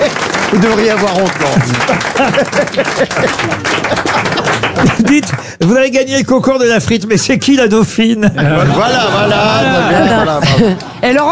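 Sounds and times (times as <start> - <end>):
audience applause: 0.0 - 5.6
speech: 0.5 - 11.3
laughter: 1.4 - 5.5, 8.2 - 11.2.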